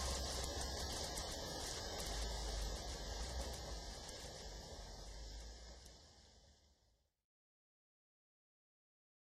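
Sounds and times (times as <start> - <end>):
rain: 0.0 - 6.6.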